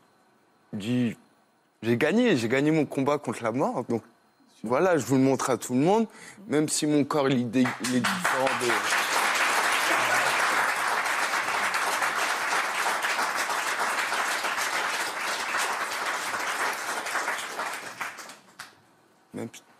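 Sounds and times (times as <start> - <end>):
speech: 0.8 - 1.2, 1.8 - 9.0
audience applause: 7.6 - 18.8.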